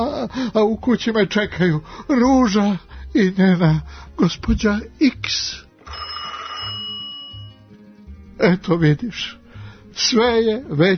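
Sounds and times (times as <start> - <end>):
speech: 0.0 - 6.0, 8.4 - 9.4, 10.0 - 10.9
telephone ringing: 5.8 - 7.6.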